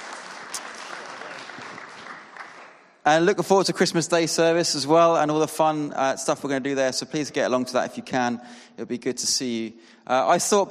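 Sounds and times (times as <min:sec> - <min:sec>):
audience applause: 0:00.0 - 0:03.0
speech: 0:03.1 - 0:10.6.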